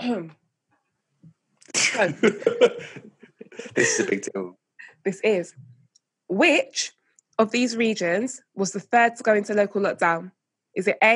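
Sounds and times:
speech: 0.0s - 0.4s, 1.8s - 5.7s, 6.3s - 11.1s
rough raspy throat clearing: 1.7s - 3.0s, 3.6s - 4.3s
voice fragment: 1.8s - 3.0s, 3.6s - 4.5s
laughter: 1.8s - 4.3s.

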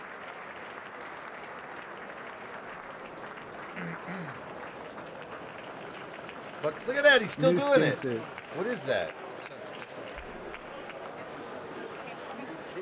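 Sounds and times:
odd muted clapping: 0.0s - 12.7s
speech: 3.8s - 4.6s, 6.6s - 9.5s.

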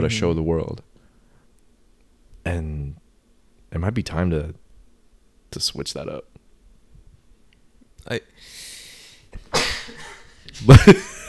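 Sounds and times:
speech: 0.0s - 0.9s, 2.4s - 3.0s, 3.7s - 4.6s, 5.5s - 6.3s, 8.0s - 8.7s, 10.5s - 11.1s
sneeze: 9.4s - 10.0s.

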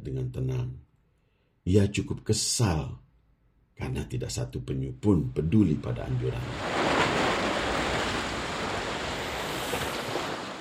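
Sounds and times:
speech: 0.0s - 0.9s, 1.6s - 3.0s, 3.8s - 6.7s
ocean waves breaking on beach: 5.5s - 10.5s.

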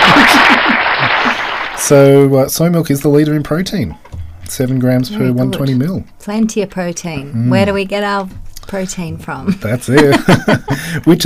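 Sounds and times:
laughter: 0.0s - 1.6s, 9.5s - 11.1s
round of applause: 0.0s - 2.0s
speech: 1.9s - 11.2s.

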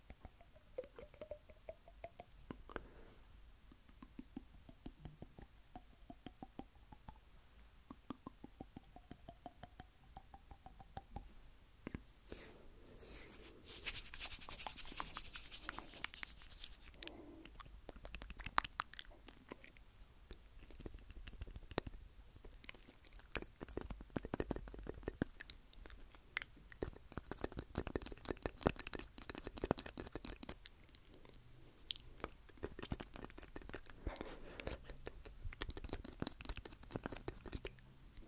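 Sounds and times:
teeth tapping together: 0.0s - 3.0s, 3.7s - 12.1s, 13.8s - 38.2s.

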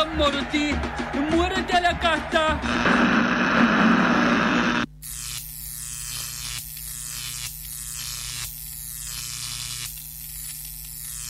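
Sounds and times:
speech: 0.2s - 3.4s
electrical buzz with low hum and crackling static: 2.6s - 11.2s.

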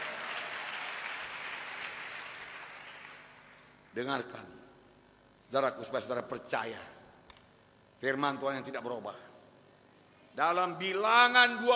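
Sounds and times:
audience applause: 0.0s - 3.7s
speech: 4.0s - 4.6s, 5.5s - 7.0s, 8.0s - 9.3s, 10.4s - 11.7s.

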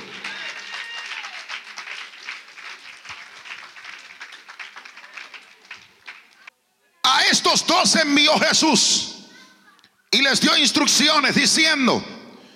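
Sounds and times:
crowd applauding loudly: 0.0s - 6.5s
speech: 7.4s - 9.1s, 10.2s - 12.2s.

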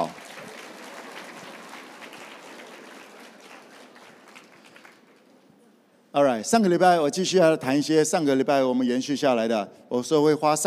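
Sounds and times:
audience clapping: 0.0s - 5.5s
speech: 6.2s - 10.6s.

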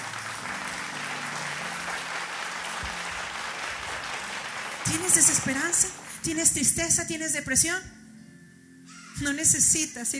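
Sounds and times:
audience applauding: 0.0s - 6.6s
speech: 4.9s - 8.0s, 9.2s - 10.1s.

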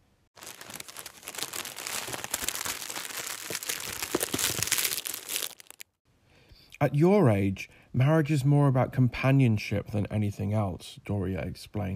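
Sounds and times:
tissue paper wrapping being torn away: 0.4s - 5.8s
speech: 6.8s - 11.9s.

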